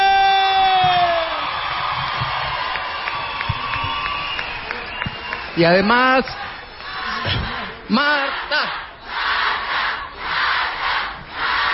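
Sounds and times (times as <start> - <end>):
high whoops and sustained shouts: 0.0 - 5.2
crowd cheering: 0.0 - 11.7
clapping: 1.3 - 5.6
speech: 5.6 - 6.5, 7.2 - 8.8.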